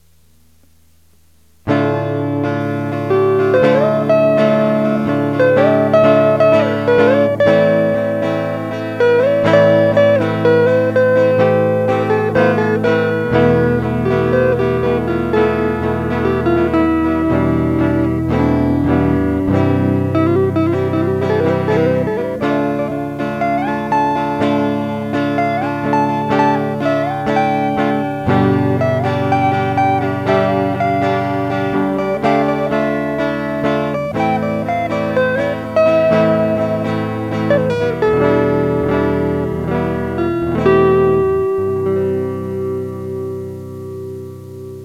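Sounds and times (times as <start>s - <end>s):
psychedelic solo: 1.4s - 44.8s.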